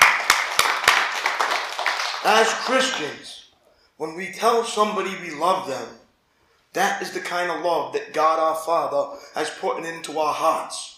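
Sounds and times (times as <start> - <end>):
crowd clapping in rhythm: 0.0 - 3.3
speech: 2.2 - 6.0, 6.8 - 10.9.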